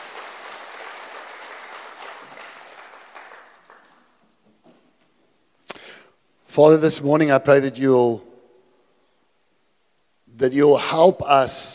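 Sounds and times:
audience clapping: 0:00.0 - 0:04.4
speech: 0:06.6 - 0:08.3, 0:10.4 - 0:11.7.

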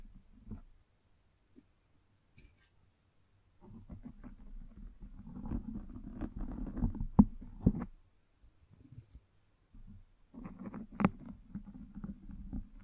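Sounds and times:
microphone brushed and scratched: 0:03.6 - 0:08.0, 0:09.9 - 0:12.8.

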